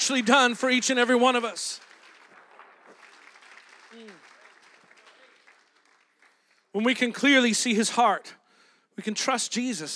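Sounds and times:
speech: 0.0s - 1.9s, 6.8s - 8.4s, 9.0s - 9.9s
audience clapping: 0.0s - 7.3s.

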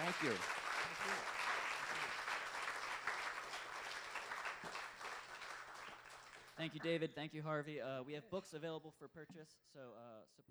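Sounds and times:
audience applause: 0.0s - 6.8s
speech: 0.1s - 1.3s, 6.6s - 10.4s.

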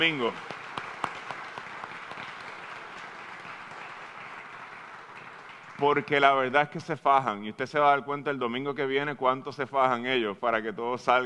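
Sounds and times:
speech: 0.0s - 0.6s, 5.8s - 11.2s
crowd applause: 0.0s - 6.4s.

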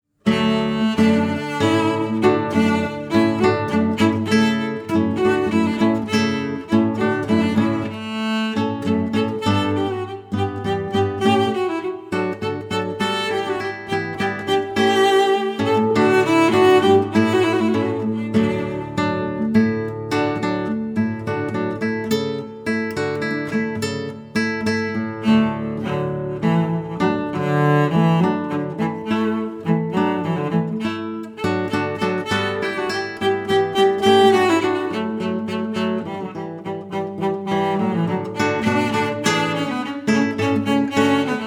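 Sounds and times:
hornpipe on cello and guitar: 0.2s - 41.4s.

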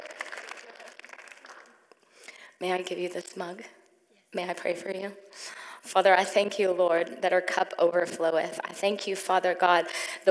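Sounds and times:
audience clapping: 0.0s - 2.0s
speech: 2.6s - 10.2s.

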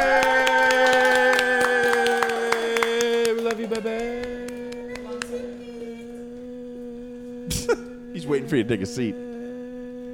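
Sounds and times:
show audience applause: 0.0s - 5.5s
speech: 8.3s - 9.3s.

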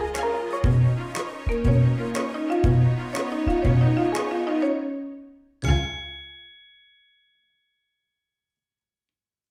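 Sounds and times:
strings: 0.0s - 6.1s.

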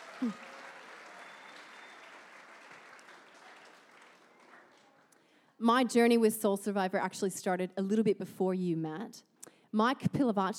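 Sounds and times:
audience clapping: 0.0s - 5.3s
speech: 0.2s - 0.5s, 5.6s - 10.5s.

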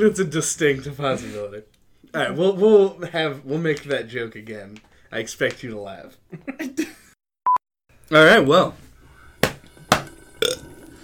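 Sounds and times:
speech: 0.0s - 7.0s, 8.1s - 8.8s
burp: 9.9s - 11.0s.

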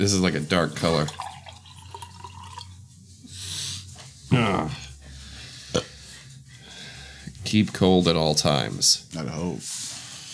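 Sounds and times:
speech: 0.0s - 1.3s, 7.5s - 9.8s
liquid dripping from a drink container: 0.8s - 2.8s.

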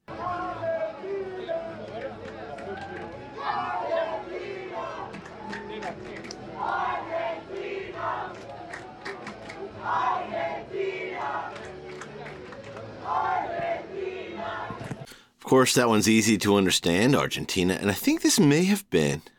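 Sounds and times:
large crowd shouting and chanting: 0.1s - 15.1s
speech: 15.5s - 19.3s.

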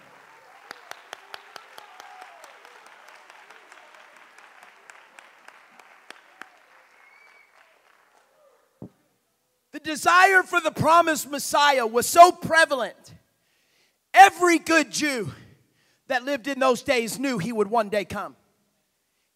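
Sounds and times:
crowd clapping hands: 0.0s - 9.0s
speech: 9.8s - 13.2s, 14.3s - 15.4s, 16.1s - 18.4s.

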